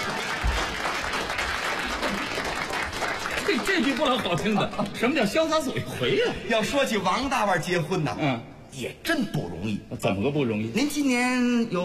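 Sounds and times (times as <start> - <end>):
audience applause: 0.0 - 5.0
laughter: 1.8 - 2.7, 3.4 - 6.7
speech: 3.5 - 11.8.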